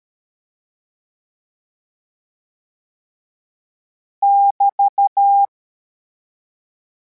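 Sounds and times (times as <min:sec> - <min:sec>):
CW morse code beeps: 0:04.3 - 0:05.5.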